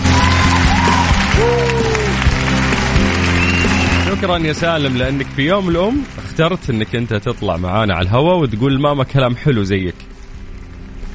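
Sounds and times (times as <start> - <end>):
whoops and shouts: 0.0 - 2.3
crowd applause: 0.0 - 7.6
speech: 4.2 - 10.1.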